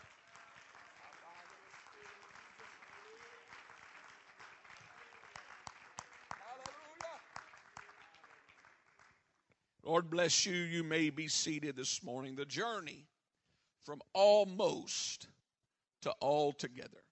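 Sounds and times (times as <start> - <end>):
audience clapping hands: 0.0 - 10.3
speech: 9.9 - 13.1, 13.8 - 15.3, 16.0 - 17.1.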